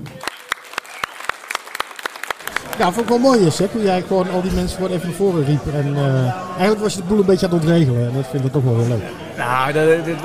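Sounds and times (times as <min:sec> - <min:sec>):
audience applause for comic makers: 0:00.0 - 0:03.8
speech: 0:02.8 - 0:10.2.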